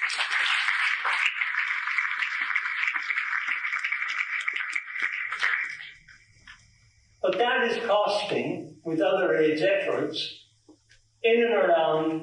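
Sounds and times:
audience applause: 0:00.0 - 0:06.0
speech: 0:07.3 - 0:10.4, 0:11.2 - 0:12.2.

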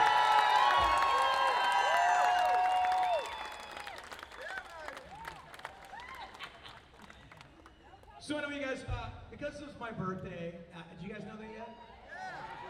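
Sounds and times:
audience applause for a performer at a live birthday show: 0:00.0 - 0:08.0
speech: 0:08.3 - 0:11.9.

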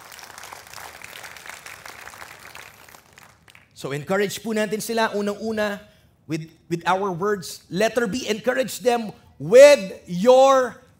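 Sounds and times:
church congregation applauding during a service: 0:00.0 - 0:03.8
speech: 0:03.8 - 0:10.8.

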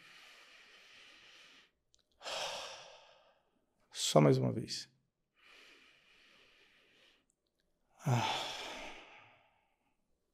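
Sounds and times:
deep belly breath in and out through the mouth: 0:00.0 - 0:03.6, 0:05.4 - 0:07.3, 0:08.0 - 0:09.9
speech: 0:04.1 - 0:05.0.

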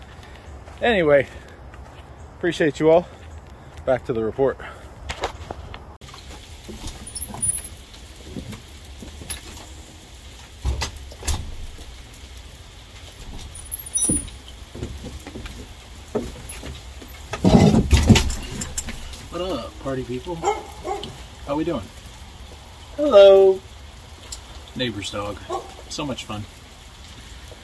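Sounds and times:
speech: 0:00.8 - 0:01.5, 0:02.4 - 0:03.2, 0:03.9 - 0:04.7, 0:20.1 - 0:20.7, 0:21.5 - 0:22.0, 0:23.0 - 0:23.7, 0:24.8 - 0:26.6
rain falling: 0:06.0 - 0:27.6.

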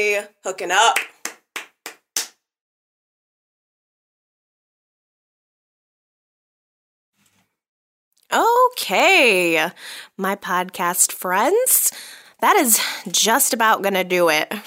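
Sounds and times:
speech: 0:00.0 - 0:01.1, 0:08.3 - 0:14.6
hands clapping: 0:00.8 - 0:02.4.

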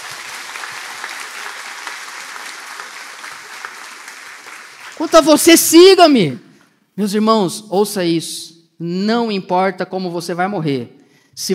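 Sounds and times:
audience clapping: 0:00.0 - 0:05.8
speech: 0:05.0 - 0:11.5.

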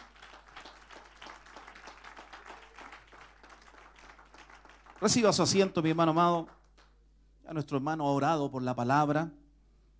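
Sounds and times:
audience applauding: 0:00.0 - 0:06.9
speech: 0:05.0 - 0:06.6, 0:07.5 - 0:09.4.

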